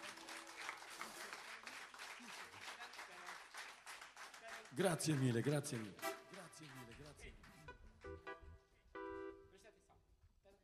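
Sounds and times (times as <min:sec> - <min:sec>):
audience applause: 0:00.0 - 0:08.2
speech: 0:04.7 - 0:08.3.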